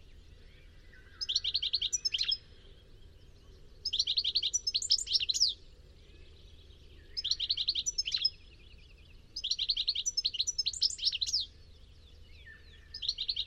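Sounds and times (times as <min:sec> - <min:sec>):
bird chirping with high thin rapid notes: 0:00.0 - 0:13.4.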